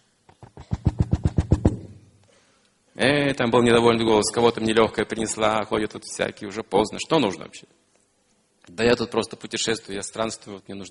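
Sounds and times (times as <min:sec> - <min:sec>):
knocking on a door: 0:00.5 - 0:01.9
speech: 0:03.0 - 0:07.9, 0:08.7 - 0:10.9.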